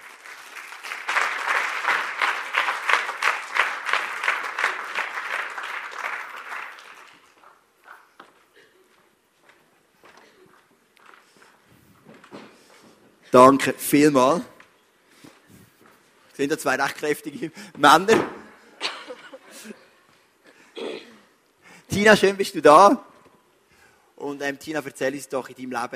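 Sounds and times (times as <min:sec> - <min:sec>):
audience clapping: 0:00.0 - 0:08.3
speech: 0:13.3 - 0:14.5, 0:16.4 - 0:18.4, 0:22.0 - 0:23.1, 0:24.4 - 0:25.9.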